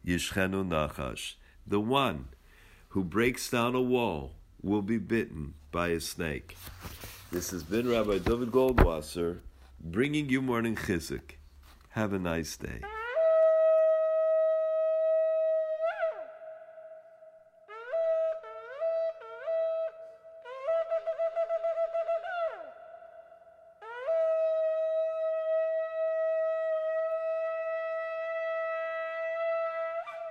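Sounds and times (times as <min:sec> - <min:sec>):
speech: 0:00.1 - 0:11.4, 0:12.0 - 0:13.0
shofar blasts: 0:12.8 - 0:22.8, 0:23.8 - 0:30.2.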